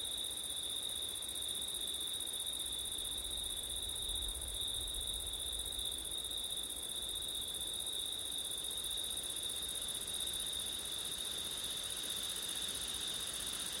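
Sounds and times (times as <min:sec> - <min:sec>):
crickets trilling: 0:00.2 - 0:13.7
low rumble of wind: 0:03.3 - 0:06.1.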